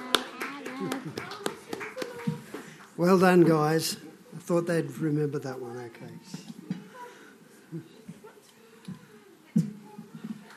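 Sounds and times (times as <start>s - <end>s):
scattered hand claps for Sunday school singers: 0.0s - 3.0s
speech: 0.8s - 1.4s, 3.0s - 6.5s.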